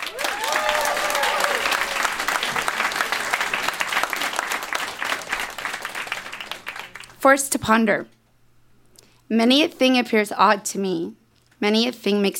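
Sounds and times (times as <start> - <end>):
audience applause welcoming a reader to the stage at a live event: 0.0 - 7.2
speech: 7.2 - 8.2, 9.3 - 12.3.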